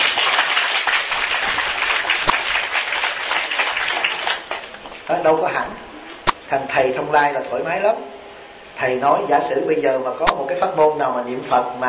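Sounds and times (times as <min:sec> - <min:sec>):
applause: 0:00.0 - 0:04.9
speech: 0:05.1 - 0:05.9, 0:06.5 - 0:08.2, 0:08.8 - 0:11.8.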